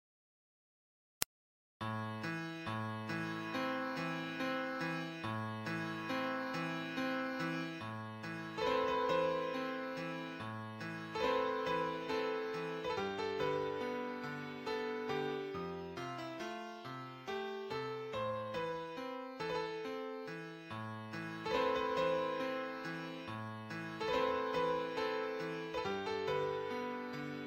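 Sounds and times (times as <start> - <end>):
piano: 1.8 - 27.4.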